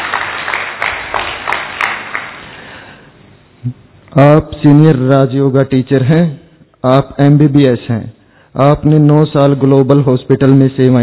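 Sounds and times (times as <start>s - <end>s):
audience applause welcoming speaker: 0.0s - 2.6s
speech: 3.7s - 11.0s.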